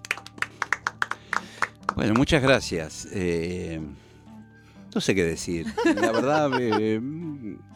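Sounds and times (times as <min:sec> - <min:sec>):
audience clapping: 0:00.0 - 0:02.4
speech: 0:02.0 - 0:04.0, 0:04.9 - 0:07.7
laughter: 0:05.6 - 0:06.9.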